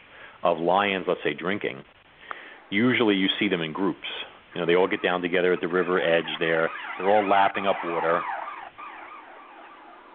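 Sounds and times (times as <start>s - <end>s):
speech: 0.4s - 2.0s, 2.7s - 8.4s
siren wailing outside: 4.6s - 10.1s.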